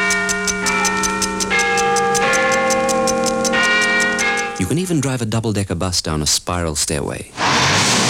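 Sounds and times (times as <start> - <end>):
Big Ben chimes: 0.0 - 5.2
wristwatch ticking: 0.0 - 5.2
speech: 4.8 - 8.0.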